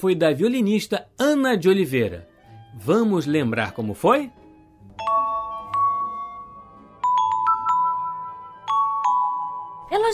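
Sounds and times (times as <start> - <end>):
speech: 0.0 - 4.4
electronic doorbell chime: 4.9 - 9.9.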